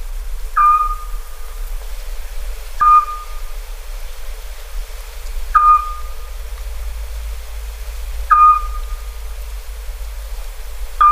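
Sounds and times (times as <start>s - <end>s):
Eurasian scops owl giving short clear whistled notes: 0.6s - 1.3s, 2.8s - 3.5s, 5.5s - 6.3s, 8.3s - 9.1s.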